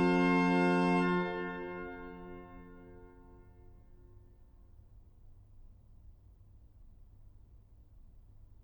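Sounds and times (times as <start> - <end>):
organ playing chorale preludes: 0.0 - 3.3.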